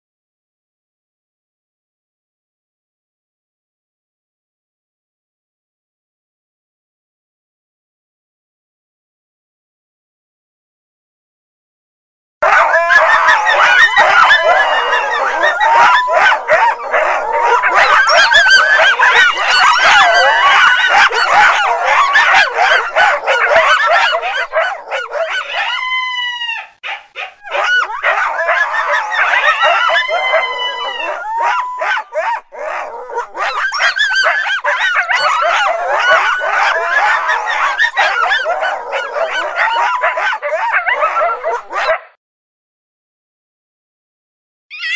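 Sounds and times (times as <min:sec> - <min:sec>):
fox yipping and squealing: 0:12.4 - 0:42.0, 0:44.7 - 0:44.9.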